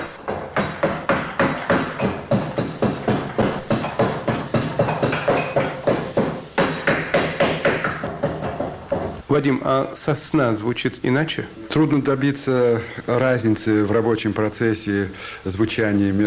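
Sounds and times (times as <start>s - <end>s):
mallet striking chisel into beech wood: 0.0s - 9.2s
speech: 9.3s - 16.2s.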